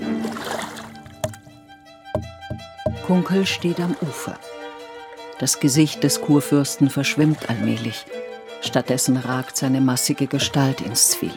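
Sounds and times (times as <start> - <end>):
wooden oars of an elector's barge dipping into the Havel river: 0.0 - 4.4, 6.8 - 8.0
speech: 3.1 - 4.5, 5.4 - 11.3.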